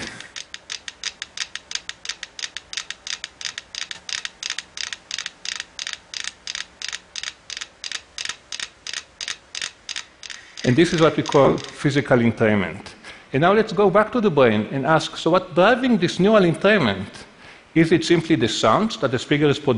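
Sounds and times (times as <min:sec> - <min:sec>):
metronomes clicking in synchrony: 0:00.0 - 0:11.9
speech: 0:10.7 - 0:19.7.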